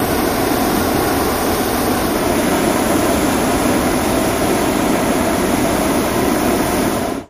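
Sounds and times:
hot air balloon burner: 0:00.0 - 0:07.2.

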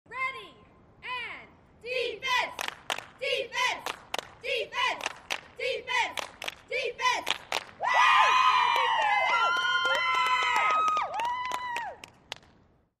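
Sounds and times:
cheerleaders cheering: 0:01.8 - 0:12.0.

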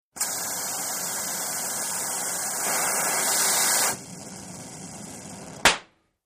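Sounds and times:
oxy-acetylene welding torch igniting and welding: 0:00.1 - 0:05.8.

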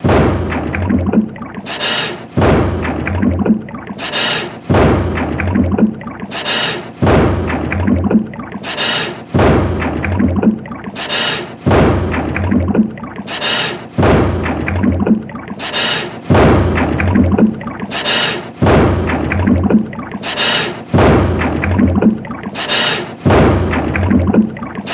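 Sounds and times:
pounding machine: 0:00.0 - 0:01.2, 0:01.9 - 0:05.9, 0:06.5 - 0:07.7, 0:09.3 - 0:10.0, 0:14.0 - 0:14.7, 0:16.3 - 0:17.4, 0:18.0 - 0:19.7, 0:20.3 - 0:21.7
liquid: 0:02.8 - 0:24.9.

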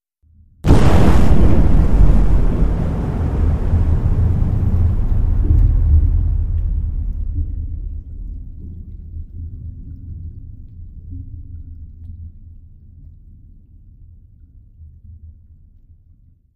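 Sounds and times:
underwater explosions: 0:00.7 - 0:09.2.

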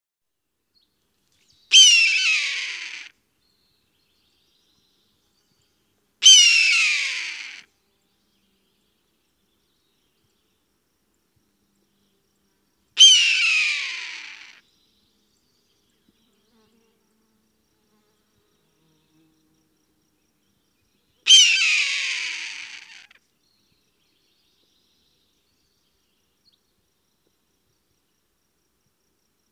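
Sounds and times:
hawk giving a harsh hoarse scream: 0:01.7 - 0:03.1, 0:06.2 - 0:07.6, 0:13.0 - 0:14.6, 0:21.3 - 0:23.1.

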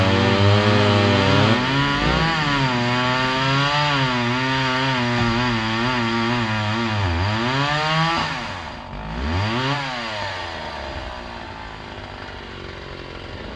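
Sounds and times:
chainsaws cutting: 0:00.0 - 0:13.5.

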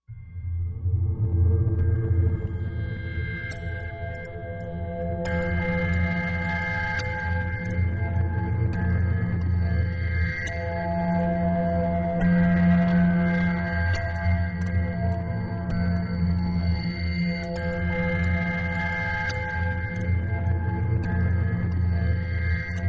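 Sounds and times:
eerie ambience: 0:00.1 - 0:22.8
warped clock: 0:03.4 - 0:22.8.

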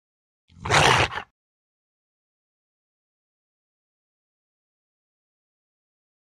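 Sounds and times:
Rottweiler low snarl and growl: 0:00.5 - 0:01.3.

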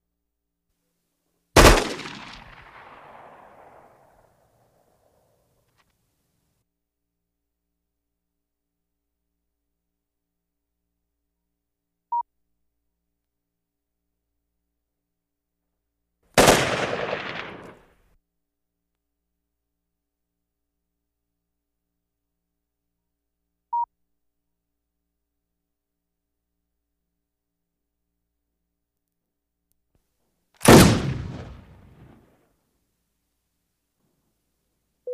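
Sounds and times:
gunshots: 0:01.6 - 0:04.4, 0:16.4 - 0:17.9, 0:30.6 - 0:32.2.

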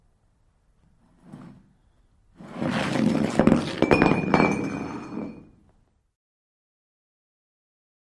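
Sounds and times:
glass beer mug scraping and sliding over surface: 0:01.1 - 0:05.6
glass mug ringing out: 0:03.8 - 0:05.6.

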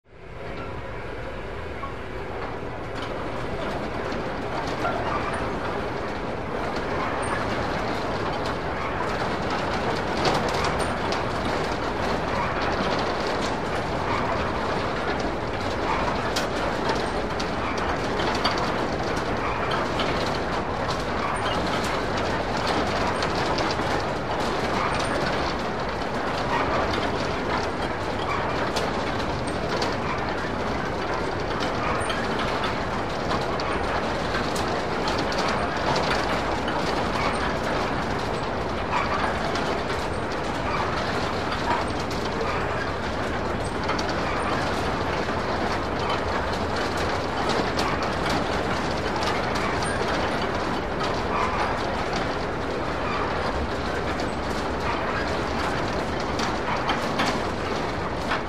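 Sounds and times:
carousel ride operating with metallic sound: 0:00.1 - 0:58.4.

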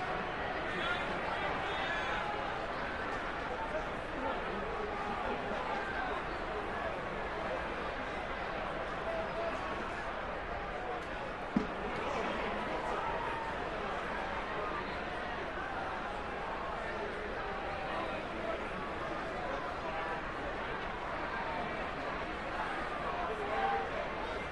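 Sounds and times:
sports arena crowd cheering: 0:00.0 - 0:24.4.

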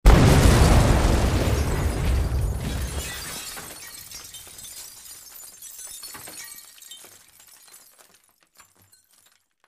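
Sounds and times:
explosion: 0:00.0 - 0:03.8
glass debris: 0:00.2 - 0:09.6.

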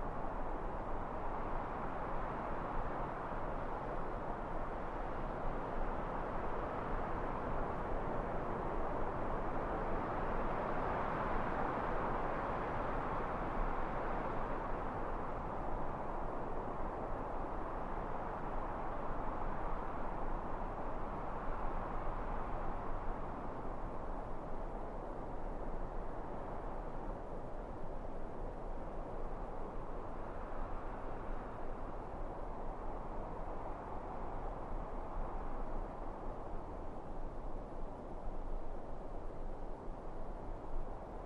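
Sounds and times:
calm wind in a pine forest: 0:00.0 - 0:41.2.

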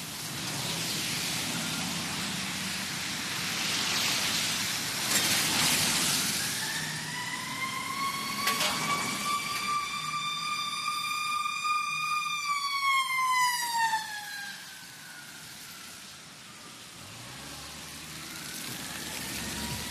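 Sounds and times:
rain: 0:00.0 - 0:19.8
traffic on wet road: 0:00.0 - 0:19.8
siren: 0:05.1 - 0:19.8.

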